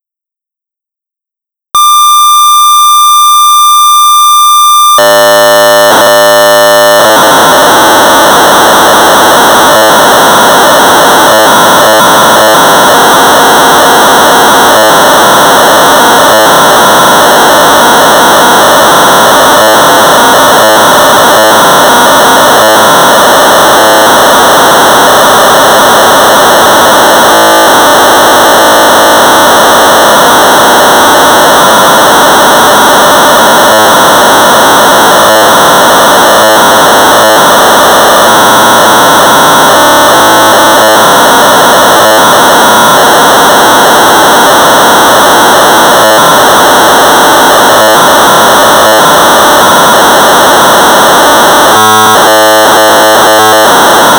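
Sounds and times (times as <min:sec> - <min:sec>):
1200 baud modem data tones: 0:01.8 - 0:54.1.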